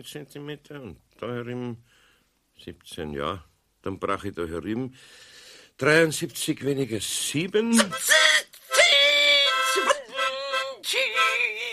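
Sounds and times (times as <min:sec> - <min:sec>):
speech: 0:00.0 - 0:02.0, 0:02.6 - 0:08.4
harmonica being blown: 0:07.7 - 0:11.7.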